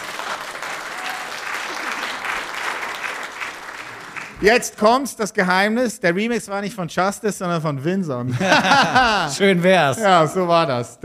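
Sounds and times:
audience applause: 0.0 - 4.5
speech: 4.4 - 11.0
laughter: 8.2 - 10.6.

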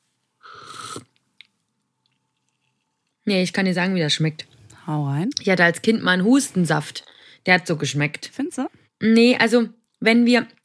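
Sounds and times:
slurping a drink: 0.4 - 1.2
soft swallowing clicks: 0.9 - 3.2
speech: 3.3 - 10.6.

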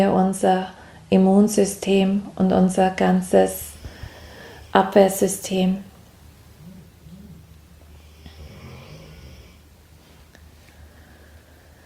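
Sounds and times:
speech: 0.0 - 3.7, 4.7 - 5.9
faint hum: 0.0 - 11.8
dog snoring: 3.6 - 11.8.

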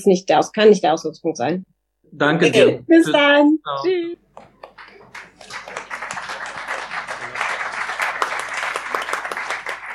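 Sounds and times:
speech: 0.0 - 4.5
crowd applause: 4.6 - 9.9.

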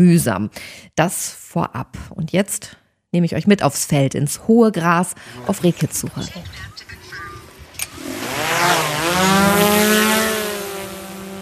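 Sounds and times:
speech: 0.0 - 7.0
drone taking off, rotors whirring: 5.4 - 11.3.

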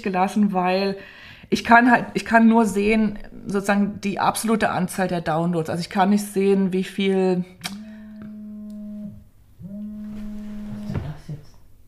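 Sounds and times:
speech: 0.0 - 7.8
mobile phone vibrating: 7.7 - 11.2.

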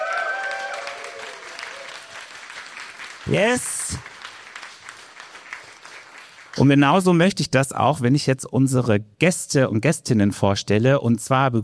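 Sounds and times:
audience applause: 0.0 - 6.7
speech: 3.3 - 4.1, 6.6 - 11.6.

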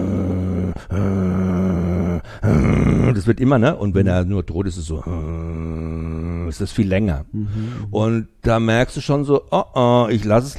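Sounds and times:
person imitating dog growl: 0.0 - 3.3, 5.0 - 6.6
speech: 3.1 - 5.8, 6.5 - 10.5.

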